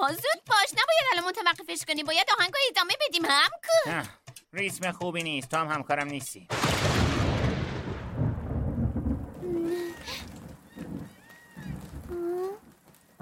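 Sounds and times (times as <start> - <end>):
speech: 0.1 - 0.5, 1.7 - 7.6
light rain drizzle: 6.5 - 13.2.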